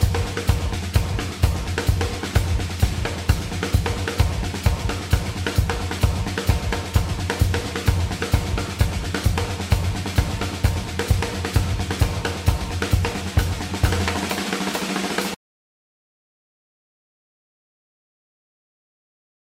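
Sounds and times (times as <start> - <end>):
drum outtakes: 0.0 - 15.4.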